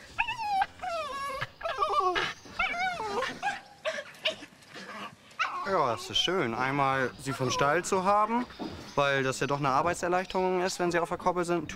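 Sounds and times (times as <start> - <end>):
excited farm dog whimpering and yipping: 0.1 - 6.5, 7.1 - 8.2
speech: 5.7 - 11.7.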